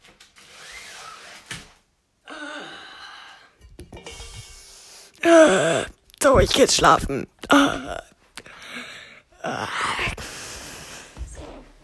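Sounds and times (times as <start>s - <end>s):
window blinds being closed: 0.0s - 1.9s
speech: 5.3s - 8.1s.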